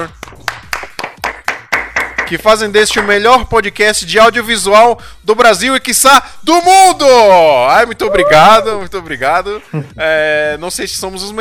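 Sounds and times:
hands clapping: 0.0 - 3.2
speech: 2.3 - 11.3.

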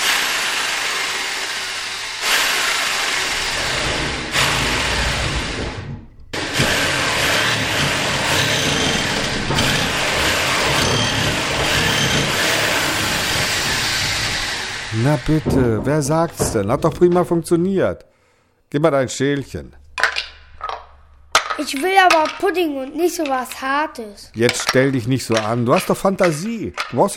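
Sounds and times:
jigsaw cutting: 0.0 - 15.5
speech: 15.2 - 18.1, 18.7 - 19.8, 21.6 - 27.1.

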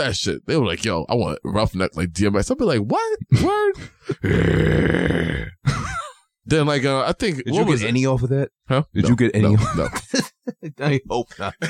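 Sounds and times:
speech: 0.0 - 5.9, 6.5 - 11.6
man grunting: 4.2 - 5.6
man imitating a Rottweiler growling: 4.2 - 5.6.

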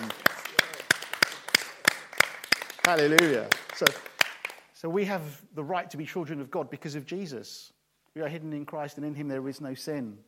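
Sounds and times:
audience clapping in a steady brisk rhythm: 0.0 - 4.8
speech: 2.9 - 4.1, 4.8 - 10.2.

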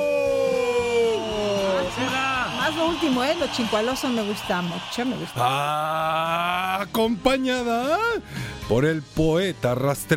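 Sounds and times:
crowd cheering with whoops and shouts: 0.0 - 6.7
speech: 2.8 - 10.1.

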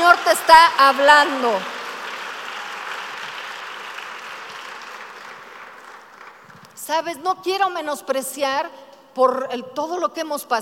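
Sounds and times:
audience applause: 0.0 - 6.7
speech: 0.5 - 1.8, 6.9 - 10.6.

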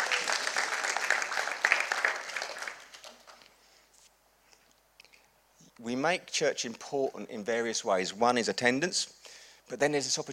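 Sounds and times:
crowd applauding: 0.0 - 3.5
speech: 5.8 - 10.3.

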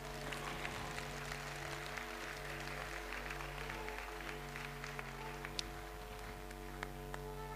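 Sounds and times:
audience clapping: 0.0 - 7.4.

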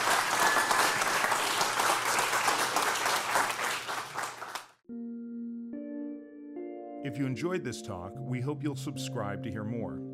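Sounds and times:
audience round of applause: 0.0 - 4.8
speech: 7.0 - 10.1.

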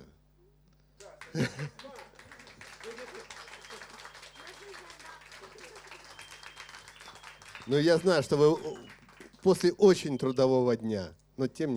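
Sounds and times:
crowd applause: 1.0 - 10.3
laughter: 1.0 - 10.5
voices murmuring: 1.0 - 10.8
speech: 1.3 - 2.0, 7.7 - 11.7.

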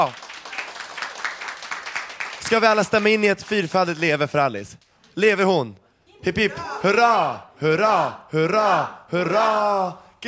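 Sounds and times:
speech: 0.0 - 0.2, 2.5 - 10.2
applause: 0.0 - 4.0.

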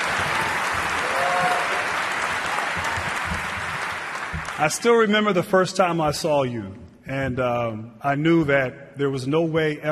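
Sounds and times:
audience applause: 0.0 - 5.1
speech: 4.6 - 9.9.

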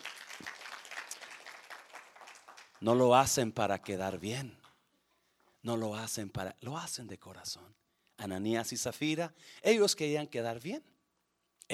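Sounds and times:
large church audience applauding loudly: 0.0 - 3.1
speech: 2.8 - 4.6, 5.6 - 10.9.

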